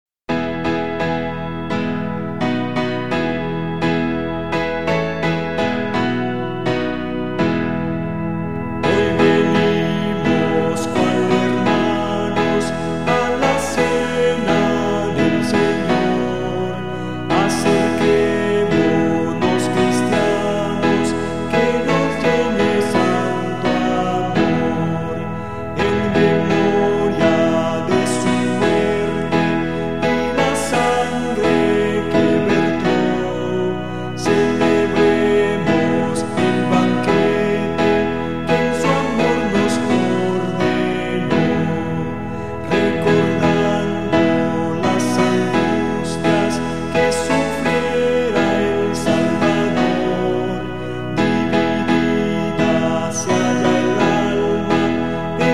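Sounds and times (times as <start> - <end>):
song melody with lyrics: 0.3 - 55.5.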